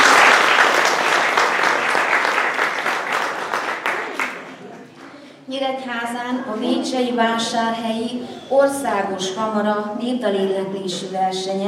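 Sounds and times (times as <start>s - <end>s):
audience applause: 0.0s - 4.9s
speech: 5.8s - 11.6s.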